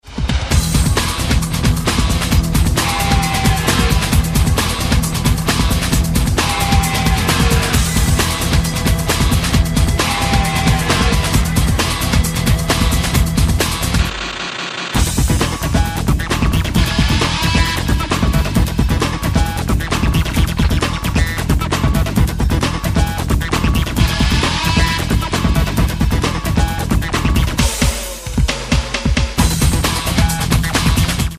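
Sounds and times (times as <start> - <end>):
instrumental music: 0.5 - 14.3, 15.0 - 31.3.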